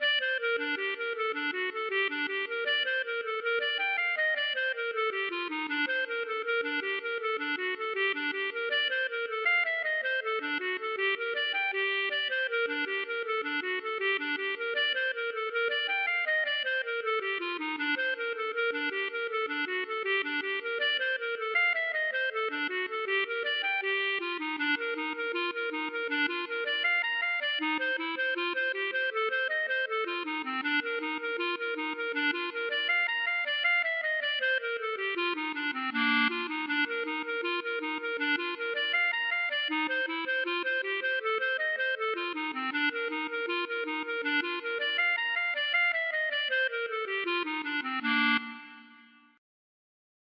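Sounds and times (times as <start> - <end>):
hornpipe tune: 0.0 - 49.4.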